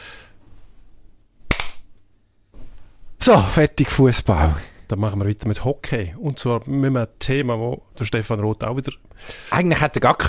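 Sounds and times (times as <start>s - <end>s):
soft rustling: 0.4s - 1.1s, 2.0s - 3.2s
sharp hand claps: 1.5s - 1.9s
speech: 3.2s - 10.2s.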